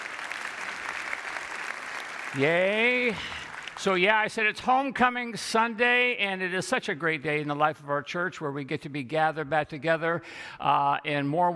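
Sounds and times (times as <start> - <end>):
round of applause: 0.0 - 4.1
speech: 2.3 - 11.5.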